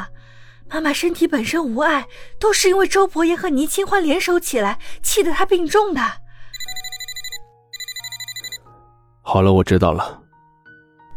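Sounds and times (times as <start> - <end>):
speech: 0.7 - 6.2, 9.3 - 10.2
telephone ringing with trilling electronic tone: 6.6 - 8.6.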